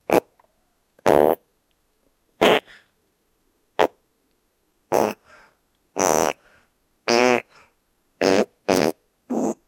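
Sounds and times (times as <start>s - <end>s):
young man farting: 1.0s - 1.4s, 2.4s - 2.7s, 4.9s - 5.2s, 6.0s - 6.4s, 7.1s - 7.5s, 8.2s - 9.6s.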